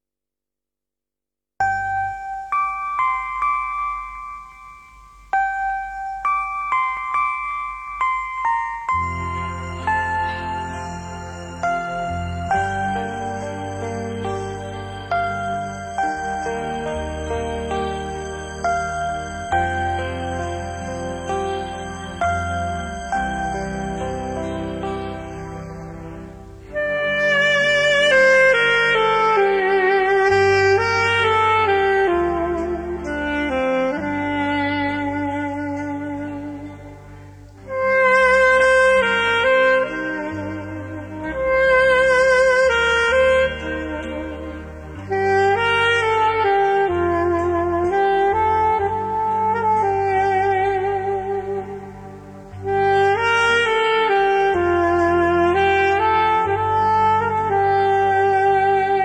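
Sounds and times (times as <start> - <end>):
instrumental music: 1.6 - 59.0.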